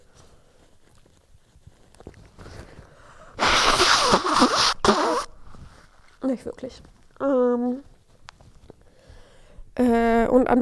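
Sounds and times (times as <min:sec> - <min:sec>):
nose blowing: 0:03.4 - 0:05.5
speech: 0:06.4 - 0:07.9, 0:09.8 - 0:10.5.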